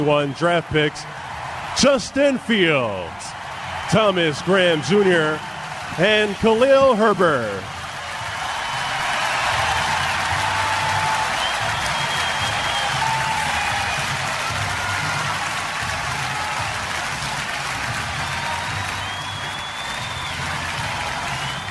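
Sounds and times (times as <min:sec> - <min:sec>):
speech: 0:00.0 - 0:01.2, 0:01.8 - 0:07.8
large stadium crowd cheering and applauding: 0:00.0 - 0:21.6
whistles: 0:11.1 - 0:14.1, 0:18.3 - 0:21.6.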